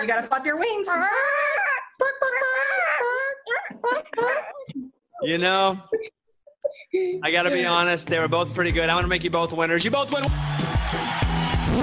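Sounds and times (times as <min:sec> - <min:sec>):
speech: 0:00.0 - 0:11.2
child imitating a chicken: 0:00.9 - 0:04.7.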